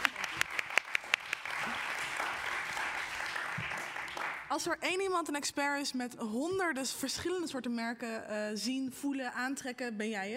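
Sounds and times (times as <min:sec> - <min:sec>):
applause: 0:00.0 - 0:04.5
speech: 0:04.6 - 0:10.3.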